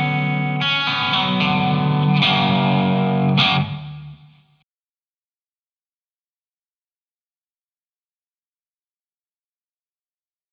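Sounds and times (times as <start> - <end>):
single coil guitar: 0.0 - 4.5.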